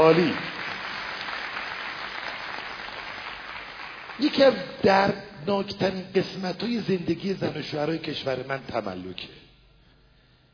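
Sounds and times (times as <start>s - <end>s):
soft audience applause: 0.0s - 4.6s
speech: 0.1s - 0.6s, 4.2s - 9.4s.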